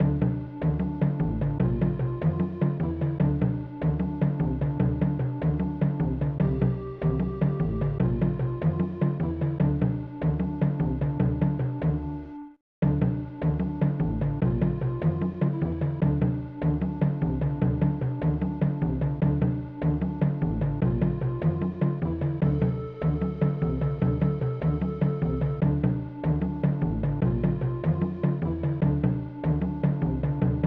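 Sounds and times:
jungle rhythm music: 0.0 - 30.6.

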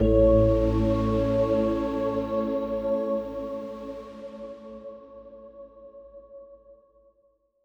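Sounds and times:
positive musical sting: 0.0 - 3.7.

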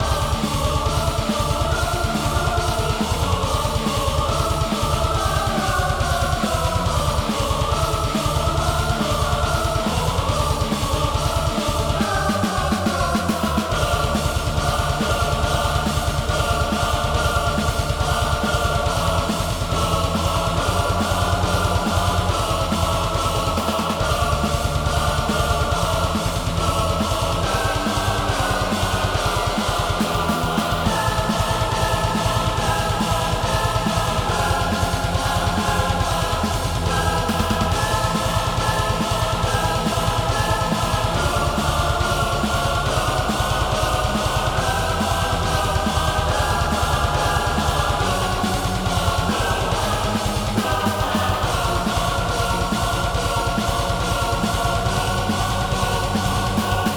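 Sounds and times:
epic music layer: 0.0 - 56.9.

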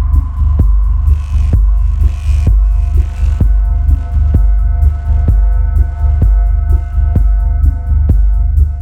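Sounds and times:
music loop: 0.1 - 8.7.

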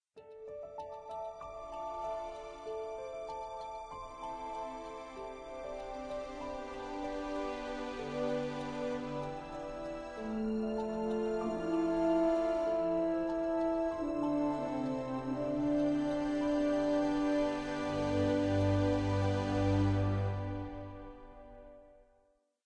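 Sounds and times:
nature sounds: 0.2 - 21.8
background music: 0.2 - 22.1.

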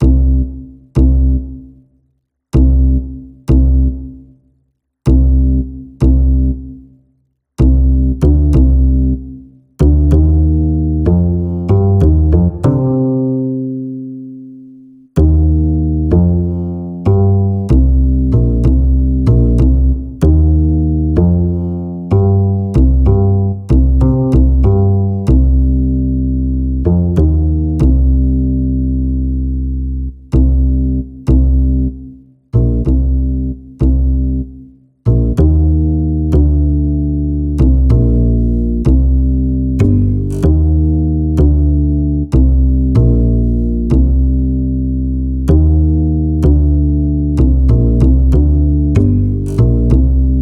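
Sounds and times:
bass: 0.0 - 50.3.

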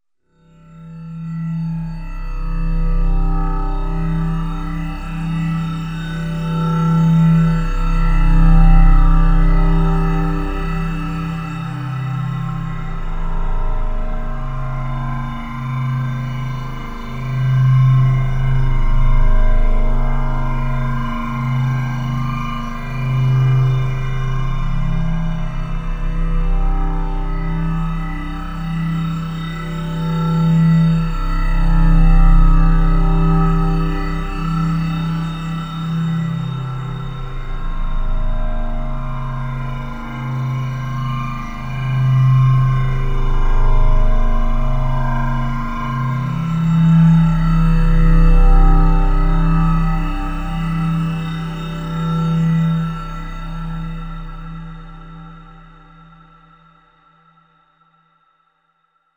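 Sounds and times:
ambience: 1.3 - 57.3.

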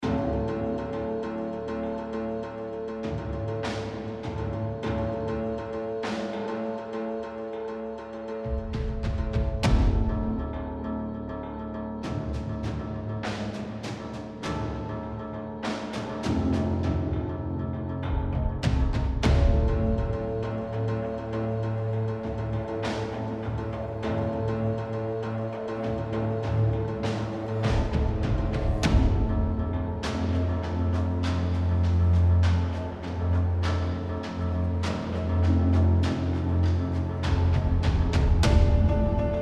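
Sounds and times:
tense combat music: 0.0 - 39.3.

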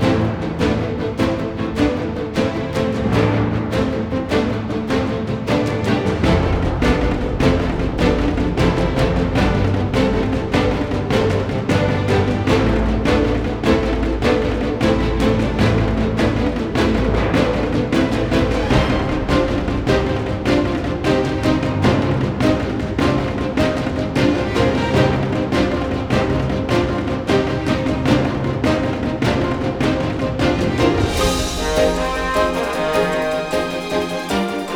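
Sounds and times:
intense battle music loop: 0.0 - 34.7.

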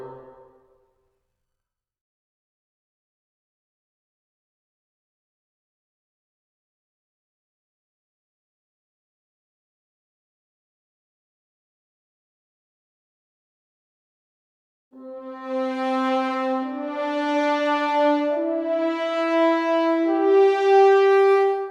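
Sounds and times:
orchestral boss battle music layer: 15.0 - 21.6.

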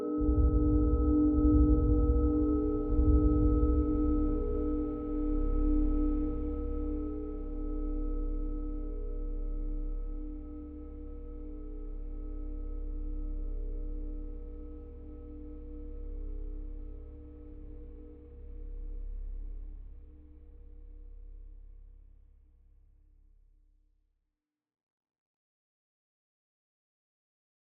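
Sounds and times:
dark scary exploration mood music: 0.1 - 21.4.

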